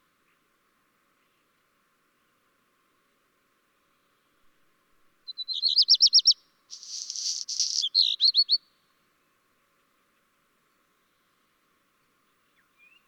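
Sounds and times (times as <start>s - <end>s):
black redstart singing: 5.6s - 8.5s.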